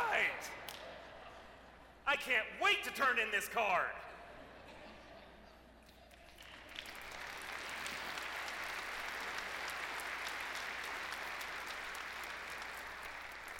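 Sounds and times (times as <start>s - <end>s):
speech: 2.1s - 4.1s
audience applause: 6.2s - 13.5s.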